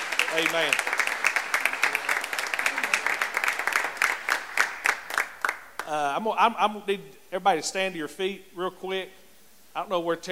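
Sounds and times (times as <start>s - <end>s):
audience clapping hands in praise: 0.0s - 6.1s
speech: 0.3s - 0.9s, 5.9s - 9.2s, 9.8s - 10.3s.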